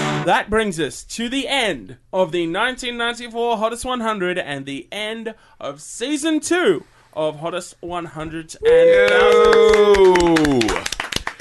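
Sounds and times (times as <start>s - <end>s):
speech: 0.2s - 11.0s
applause: 8.9s - 11.3s.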